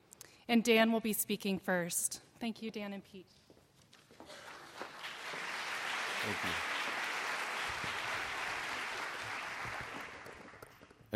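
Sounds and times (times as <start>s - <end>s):
speech: 0.5s - 3.4s, 6.2s - 6.7s
audience applause: 4.2s - 11.0s.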